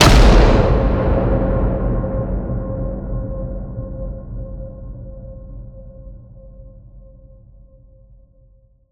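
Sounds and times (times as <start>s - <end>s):
distorted cinematic hit: 0.0s - 4.7s.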